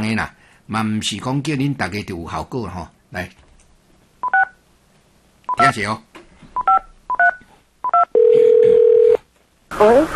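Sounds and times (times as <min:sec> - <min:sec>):
speech: 0:00.0 - 0:03.4, 0:05.6 - 0:06.1, 0:09.8 - 0:10.1
two-tone phone keypad beeps of dialing: 0:04.2 - 0:04.6, 0:05.5 - 0:05.7, 0:06.6 - 0:09.2.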